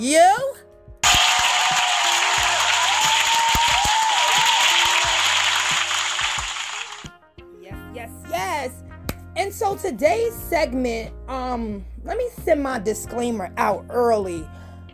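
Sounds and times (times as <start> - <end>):
speech: 0.0 - 0.6, 9.9 - 14.6
round of applause: 1.0 - 7.1.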